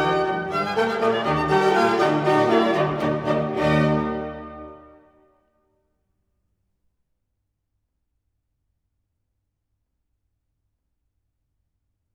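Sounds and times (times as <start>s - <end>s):
fast symphony movement: 0.0s - 5.0s.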